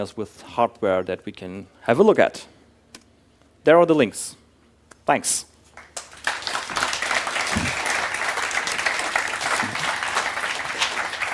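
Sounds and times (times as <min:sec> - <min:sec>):
speech: 0:00.0 - 0:02.6, 0:03.6 - 0:04.4, 0:05.1 - 0:05.5
audience applause: 0:05.8 - 0:11.3.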